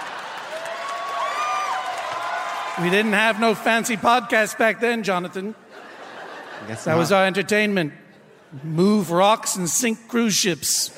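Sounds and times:
crowd applauding: 0:00.0 - 0:04.4
speech: 0:02.8 - 0:05.6, 0:06.6 - 0:10.9
laughter: 0:04.9 - 0:09.2, 0:10.6 - 0:10.9.

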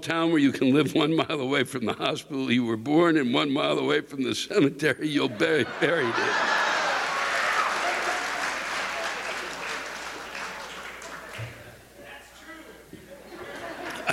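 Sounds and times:
speech: 0:00.0 - 0:06.6
laughter: 0:05.2 - 0:11.7, 0:13.0 - 0:14.1
rousing audience applause: 0:05.7 - 0:11.7.

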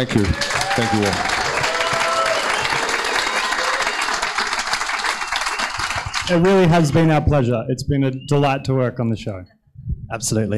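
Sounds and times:
speech: 0:00.0 - 0:01.4, 0:06.3 - 0:10.5
audience applause: 0:00.0 - 0:07.2.

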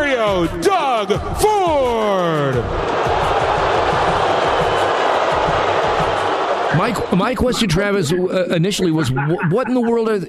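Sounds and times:
speech: 0:00.2 - 0:03.1, 0:06.7 - 0:10.2
large crowd booing: 0:00.6 - 0:08.3.

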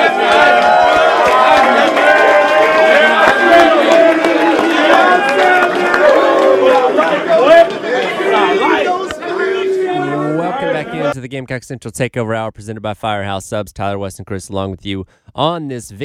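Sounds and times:
crowd chattering and shouting in a college football locker room after a victory: 0:00.0 - 0:11.2
speech: 0:11.4 - 0:16.0.

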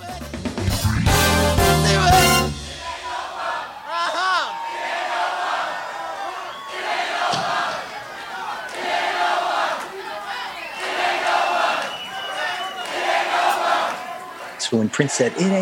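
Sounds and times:
band music: 0:00.0 - 0:03.4
large concert crowd chanting: 0:01.2 - 0:15.5
speech: 0:14.7 - 0:15.5.

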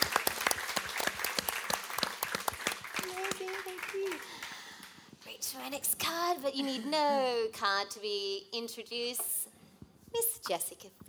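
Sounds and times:
audience applause: 0:00.0 - 0:05.0
speech: 0:05.6 - 0:09.3, 0:10.5 - 0:11.0.

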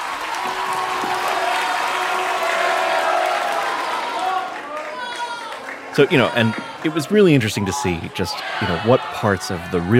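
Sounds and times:
large crowd applauding and cheering: 0:00.0 - 0:09.9
crowd voices shouting: 0:00.4 - 0:09.9
speech: 0:06.0 - 0:09.9.

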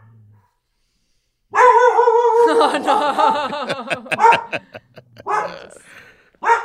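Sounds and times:
dog barking: 0:01.5 - 0:02.5, 0:04.1 - 0:04.6, 0:05.2 - 0:05.6, 0:06.4 - 0:06.6
laughter: 0:02.4 - 0:06.2
speech: 0:02.7 - 0:04.9.

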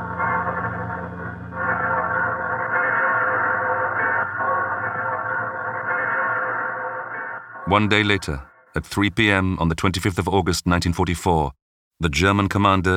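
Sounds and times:
church bells ringing across a city: 0:00.0 - 0:07.6
speech: 0:07.7 - 0:12.9.

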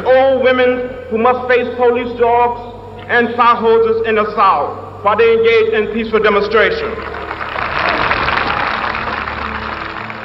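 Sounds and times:
speech: 0:00.0 - 0:07.2
faint low hum: 0:00.0 - 0:10.2
crowd clapping in approval: 0:06.8 - 0:10.2.

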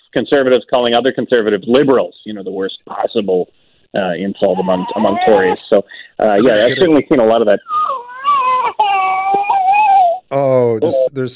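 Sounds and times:
speech: 0:00.1 - 0:07.8, 0:10.3 - 0:11.3
baby crying: 0:04.4 - 0:07.0, 0:07.6 - 0:11.1.

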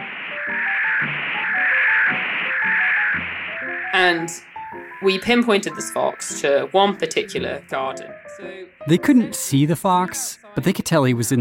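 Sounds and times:
radio tracking receiver static: 0:00.0 - 0:09.1
faint tonal warbles in radio static: 0:00.0 - 0:09.3
speech: 0:04.0 - 0:11.3.

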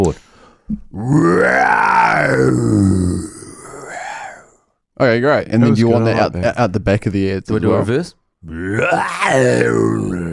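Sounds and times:
speech: 0:00.0 - 0:03.3, 0:05.0 - 0:10.3
person imitating a lion roar: 0:00.9 - 0:04.6, 0:08.4 - 0:10.3.

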